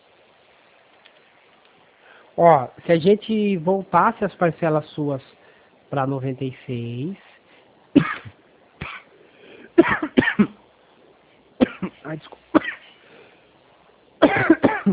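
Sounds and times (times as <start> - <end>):
speech: 2.4 - 5.3, 5.9 - 7.2
dry coughing from a dry throat: 8.0 - 9.1, 9.7 - 10.6, 11.6 - 12.9, 14.2 - 14.9.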